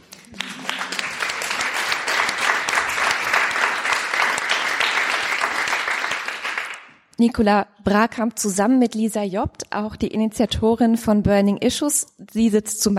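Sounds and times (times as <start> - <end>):
audience applause: 0.0 - 6.9
speech: 7.2 - 12.9.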